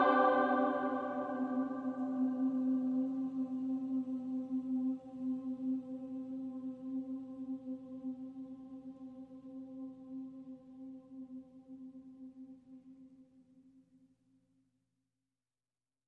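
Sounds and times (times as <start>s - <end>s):
choir singing: 0.0s - 11.2s.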